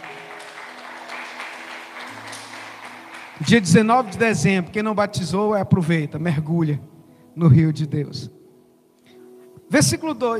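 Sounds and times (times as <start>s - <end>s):
audience applause: 0.0s - 4.5s
speech: 3.4s - 8.4s, 9.7s - 10.3s.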